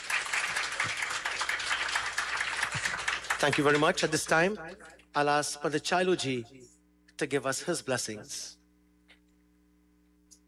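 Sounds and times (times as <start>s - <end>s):
audience applause: 0.0s - 4.2s
speech: 3.4s - 8.6s.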